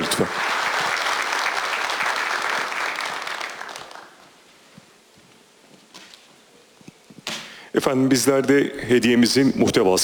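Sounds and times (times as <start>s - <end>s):
audience applause: 0.0s - 4.3s
speech: 7.8s - 10.0s.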